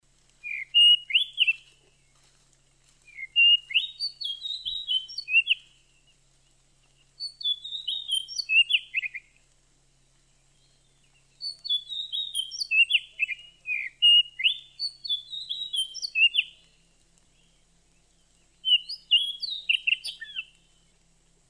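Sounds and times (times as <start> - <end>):
Oriental magpie-robin singing rich varied whistles: 0.4 - 1.6, 3.1 - 5.8, 7.2 - 9.4, 10.5 - 16.6, 18.6 - 20.6.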